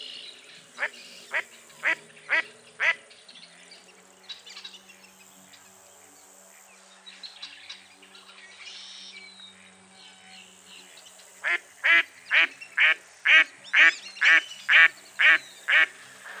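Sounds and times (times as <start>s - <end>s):
duck quacking: 0.8s - 3.0s, 11.5s - 16.3s.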